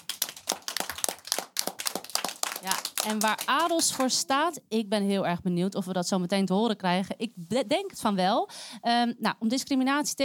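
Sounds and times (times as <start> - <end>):
audience applause: 0.0 - 3.8
speech: 2.6 - 10.2.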